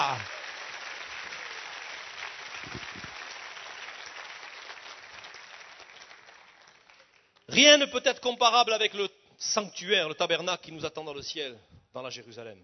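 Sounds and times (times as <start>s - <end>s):
church congregation applauding in an ovation: 0.0s - 7.8s
speech: 7.6s - 12.6s.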